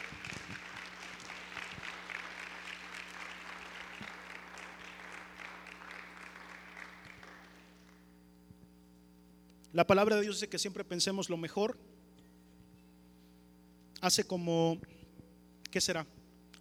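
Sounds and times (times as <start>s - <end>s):
audience applause: 0.0s - 8.0s
speech: 9.8s - 11.9s, 14.0s - 15.0s, 15.7s - 16.2s.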